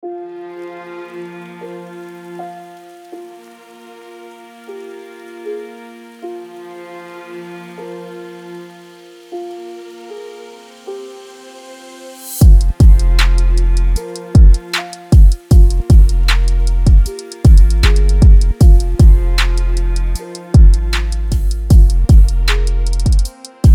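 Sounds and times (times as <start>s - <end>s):
angry sad trap beat in F minor: 12.4s - 23.7s.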